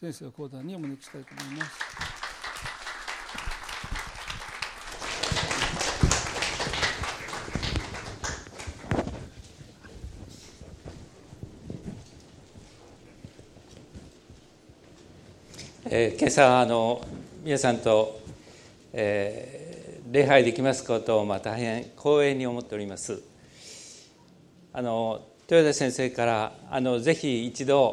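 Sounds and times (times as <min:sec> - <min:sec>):
speech: 0:00.0 - 0:02.1, 0:15.9 - 0:18.2, 0:19.0 - 0:23.3, 0:24.7 - 0:27.9
applause: 0:00.4 - 0:09.3.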